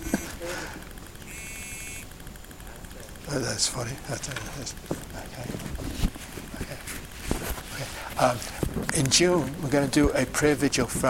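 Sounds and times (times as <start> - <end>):
mobile phone ringing: 1.3 - 2.2
speech: 3.3 - 6.0, 8.2 - 11.0.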